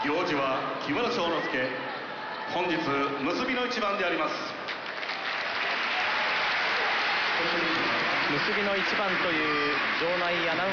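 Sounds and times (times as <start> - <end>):
speech: 0.0 - 4.6, 7.4 - 10.7
large arena crowd applause: 4.7 - 10.7.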